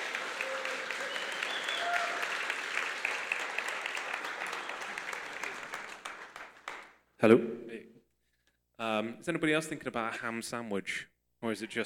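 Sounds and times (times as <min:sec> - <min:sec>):
audience applause: 0:00.0 - 0:07.0
faint voices and cheers: 0:00.3 - 0:02.5
speech: 0:07.2 - 0:07.8, 0:08.8 - 0:11.8.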